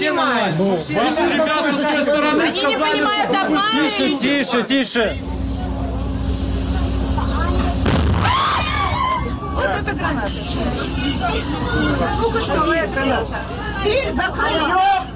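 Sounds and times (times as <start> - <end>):
speech: 0.0 - 5.4, 9.6 - 15.1
crowd commotion and raised voices: 0.0 - 15.1
stun grenade blast: 7.8 - 8.8.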